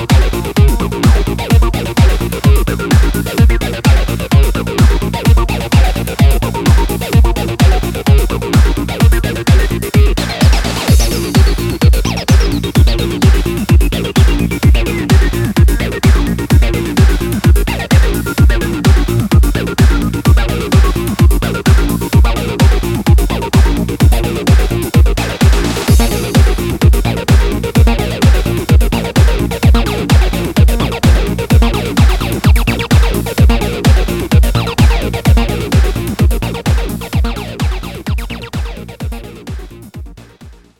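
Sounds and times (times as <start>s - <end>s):
bass line: 0.0s - 40.7s.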